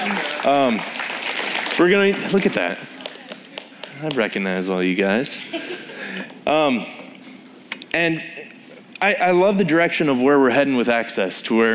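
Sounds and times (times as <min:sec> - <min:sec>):
audience applause: 0:00.0 - 0:03.6
speech: 0:00.4 - 0:01.0, 0:01.8 - 0:03.0, 0:04.0 - 0:07.0, 0:07.9 - 0:08.4, 0:09.0 - 0:11.7.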